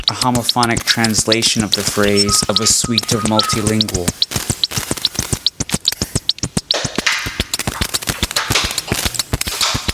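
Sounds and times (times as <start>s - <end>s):
snare drum sound from two sheets of wide ruled paper rubbed together: 0.0s - 9.9s
speech: 0.1s - 4.3s.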